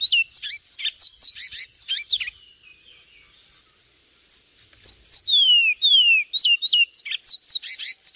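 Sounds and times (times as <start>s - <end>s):
Javan tesia piercing high chirps and falling whistles: 0.0s - 2.3s, 4.3s - 8.1s.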